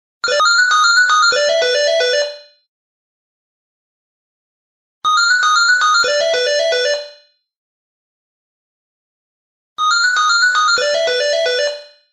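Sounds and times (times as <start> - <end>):
3D ringtone: 0.2 - 2.7, 5.1 - 7.5, 9.8 - 12.1.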